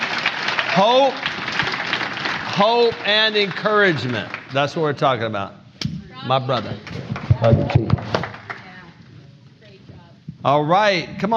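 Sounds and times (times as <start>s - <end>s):
audience applause for a man being welcomed: 0.0s - 5.2s, 6.8s - 8.8s
speech: 0.8s - 1.3s, 2.6s - 8.0s, 10.4s - 11.3s.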